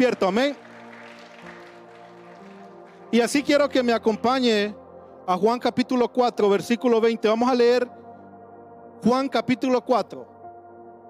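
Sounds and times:
speech: 0:00.0 - 0:00.6, 0:03.1 - 0:08.0, 0:09.0 - 0:10.3
audience applause: 0:00.0 - 0:03.5.

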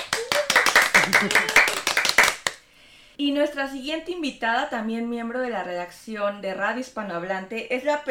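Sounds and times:
audience applause: 0:00.0 - 0:02.6
speech: 0:01.1 - 0:01.6, 0:03.2 - 0:08.0.

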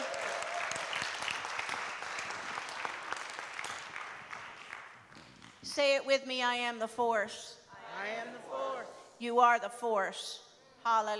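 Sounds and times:
audience hand clap applause: 0:00.0 - 0:05.6
speech: 0:05.7 - 0:11.1.

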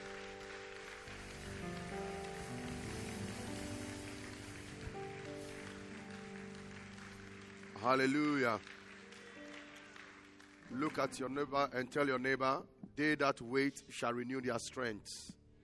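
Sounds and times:
audience clapping hands: 0:00.0 - 0:11.5
speech: 0:07.8 - 0:08.8, 0:10.7 - 0:15.4.

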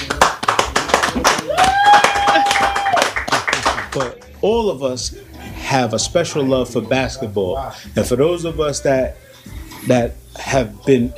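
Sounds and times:
audience round of applause: 0:00.0 - 0:04.2
speech: 0:04.0 - 0:11.1.

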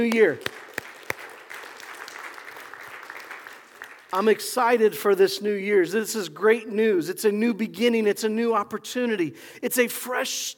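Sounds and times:
speech: 0:00.0 - 0:00.6, 0:04.1 - 0:10.5
audience applause: 0:00.0 - 0:04.4.

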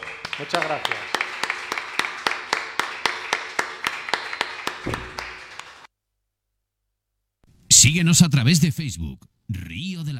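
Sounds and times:
audience applause: 0:00.0 - 0:05.9
speech: 0:00.4 - 0:01.3, 0:07.8 - 0:10.1.

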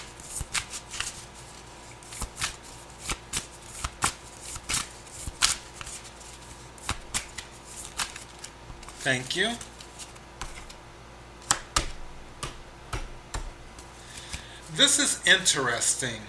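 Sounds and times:
tarot cards being shuffled during a reading: 0:00.0 - 0:10.8
speech: 0:09.0 - 0:09.7, 0:14.8 - 0:16.2.

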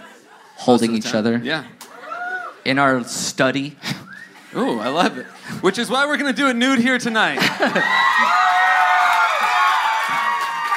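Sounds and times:
laughter: 0:00.0 - 0:00.7, 0:07.3 - 0:08.4
speech: 0:00.6 - 0:01.8, 0:02.6 - 0:03.9, 0:04.5 - 0:08.4
live audience applauding and cheering: 0:07.6 - 0:10.7.

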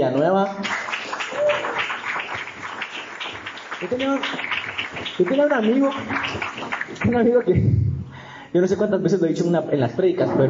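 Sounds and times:
speech: 0:00.0 - 0:00.9, 0:03.8 - 0:07.8, 0:08.5 - 0:10.4
audience applause: 0:00.6 - 0:07.4.

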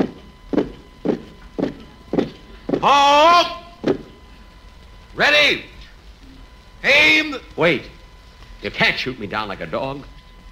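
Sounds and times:
footsteps of people marched out to a courtyard: 0:00.0 - 0:03.0, 0:03.7 - 0:04.2
speech: 0:02.8 - 0:03.6, 0:05.2 - 0:05.7, 0:06.8 - 0:08.0, 0:08.6 - 0:10.1.

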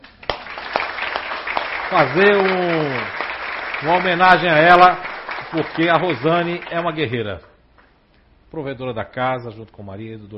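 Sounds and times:
audience applause: 0:00.2 - 0:07.3
speech: 0:01.9 - 0:03.2, 0:03.8 - 0:07.5, 0:08.5 - 0:10.3.

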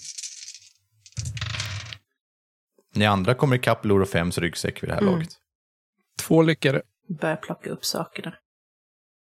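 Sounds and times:
dice being rolled: 0:00.0 - 0:02.0
speech: 0:03.0 - 0:05.4, 0:06.3 - 0:08.4.

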